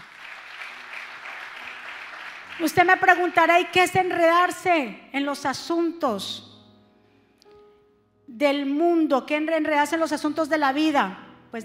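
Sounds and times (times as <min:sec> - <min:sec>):
audience applauding loudly: 0:00.0 - 0:02.7
speech: 0:02.6 - 0:06.5, 0:08.3 - 0:11.6.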